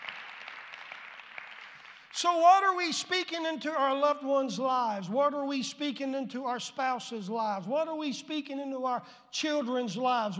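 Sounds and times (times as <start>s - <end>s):
crowd clapping: 0.0s - 2.2s
speech: 2.2s - 10.3s.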